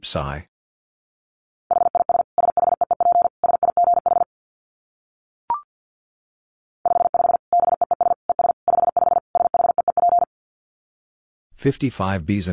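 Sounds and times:
speech: 0:00.0 - 0:00.5, 0:11.6 - 0:12.5
very fast Morse code dits at 50 wpm: 0:01.7 - 0:04.3, 0:06.9 - 0:10.3.

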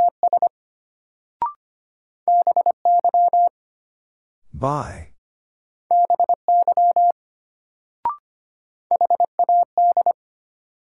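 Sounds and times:
Morse code tones at 25 words per minute: 0:02.3 - 0:03.5, 0:05.9 - 0:07.1, 0:08.9 - 0:10.2
speech: 0:04.6 - 0:05.1.

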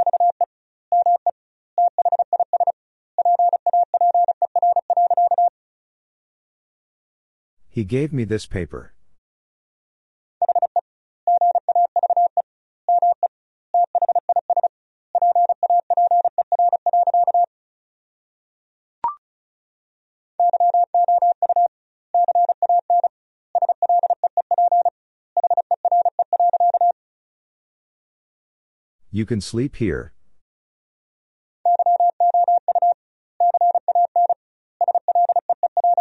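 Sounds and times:
rapid Morse code beeps: 0:00.0 - 0:00.4, 0:01.0 - 0:01.2, 0:01.8 - 0:05.5, 0:10.4 - 0:17.5, 0:20.4 - 0:27.0, 0:31.7 - 0:35.9
speech: 0:07.8 - 0:09.0, 0:29.2 - 0:30.2.

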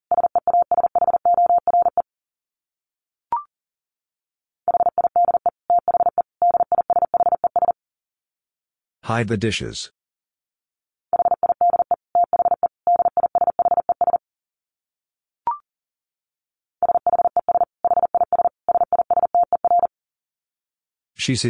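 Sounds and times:
fast Morse code at 40 words per minute: 0:00.1 - 0:02.0, 0:04.7 - 0:07.7, 0:11.2 - 0:14.2, 0:16.8 - 0:19.9
speech: 0:09.1 - 0:10.0, 0:21.3 - 0:21.4.

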